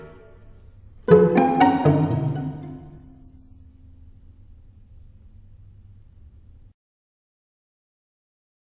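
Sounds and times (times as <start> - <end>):
string quartet playing: 1.1 - 3.3.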